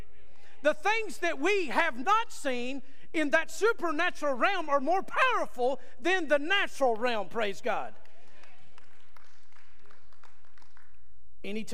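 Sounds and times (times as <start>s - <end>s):
speech: 0.6s - 8.0s, 11.4s - 11.7s
scattered clapping from an audience: 8.0s - 11.1s.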